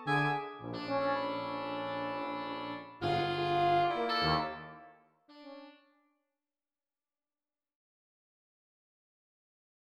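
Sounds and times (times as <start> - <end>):
MIDI march for wind quintet: 0.0 - 5.8.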